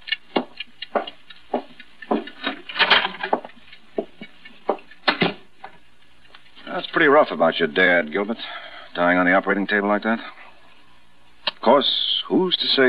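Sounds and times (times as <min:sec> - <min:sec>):
clock ticking: 0:00.0 - 0:08.2
speech: 0:07.0 - 0:10.4, 0:11.6 - 0:12.8.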